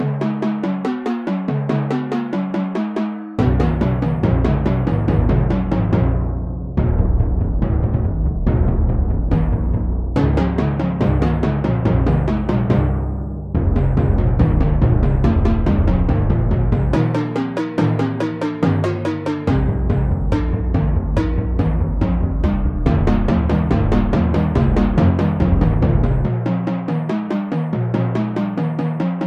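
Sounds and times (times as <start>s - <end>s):
drum: 0.0s - 29.2s.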